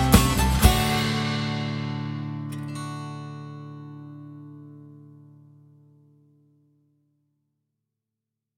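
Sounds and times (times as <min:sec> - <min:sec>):
instrumental music: 0:00.0 - 0:06.2.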